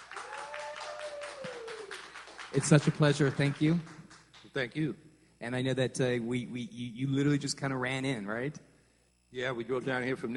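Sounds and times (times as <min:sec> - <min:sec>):
audience applause: 0:00.0 - 0:04.4
speech: 0:02.5 - 0:08.7, 0:09.3 - 0:10.3.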